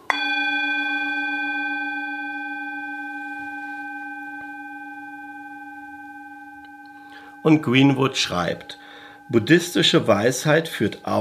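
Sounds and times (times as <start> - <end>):
gong stroke ringing: 0.0 - 10.3
speech: 7.4 - 11.1.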